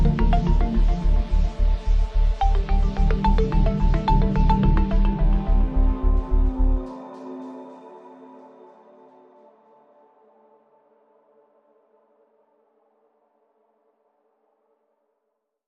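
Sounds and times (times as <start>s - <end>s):
ambient music: 0.0s - 12.1s.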